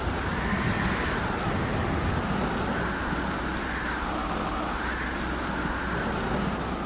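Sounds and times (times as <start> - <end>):
wind: 0.0 - 6.8.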